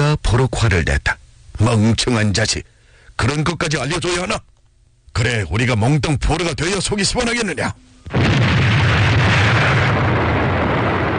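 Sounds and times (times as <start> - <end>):
speech: 0.4 - 4.5, 5.2 - 10.1
bridge blown up in thunderous explosion: 8.1 - 11.1.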